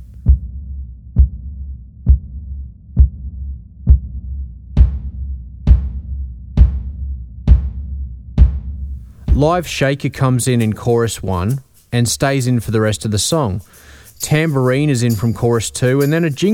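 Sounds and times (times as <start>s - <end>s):
subby woolly kick drum: 0.0s - 9.8s
speech: 9.4s - 16.5s.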